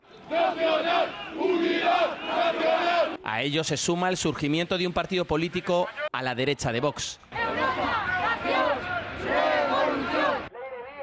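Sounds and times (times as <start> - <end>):
crowd chanting at Francoist demonstration: 0.0 - 3.2, 7.3 - 10.8
speech: 3.4 - 7.4.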